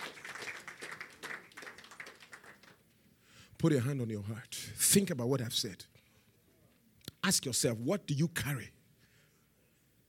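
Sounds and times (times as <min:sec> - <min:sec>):
audience clapping: 0:00.0 - 0:03.0
speech: 0:03.6 - 0:06.0, 0:07.3 - 0:08.8.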